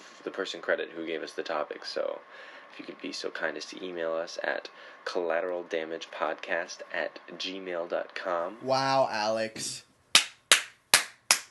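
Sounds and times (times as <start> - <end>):
speech: 0.2 - 9.9
crisp hand claps: 10.2 - 11.5.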